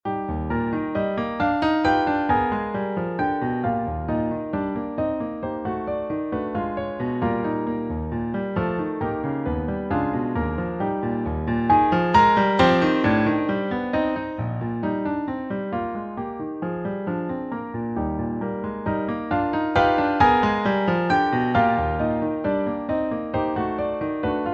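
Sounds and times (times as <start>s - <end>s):
piano: 0.0s - 24.5s.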